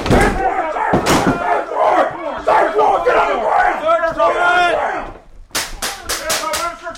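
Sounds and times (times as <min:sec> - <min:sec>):
door crashing in during SWAT drill: 0:00.0 - 0:01.7
people shouting during SWAT drill: 0:00.0 - 0:06.8.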